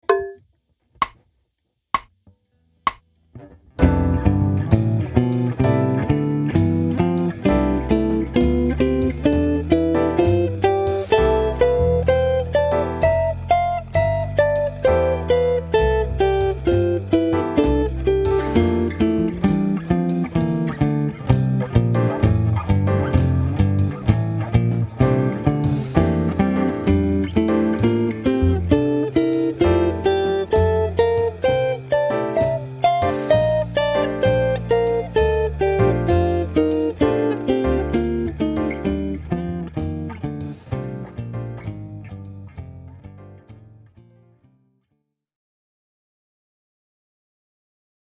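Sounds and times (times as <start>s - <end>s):
major seventh chord exercise with simultaneous fifth: 3.8s - 42.0s.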